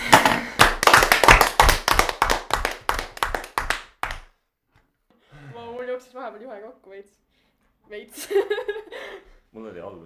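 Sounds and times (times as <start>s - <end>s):
small round of applause, hand clapping: 0.0s - 4.4s
speech: 6.3s - 10.0s.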